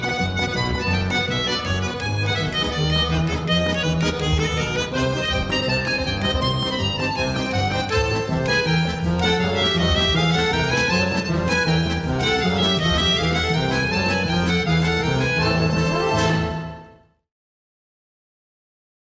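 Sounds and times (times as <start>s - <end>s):
accordion: 0.0s - 17.2s.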